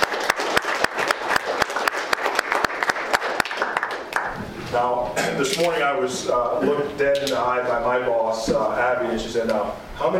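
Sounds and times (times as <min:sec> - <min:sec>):
audience applause: 0:00.0 - 0:04.4
speech: 0:04.8 - 0:10.1.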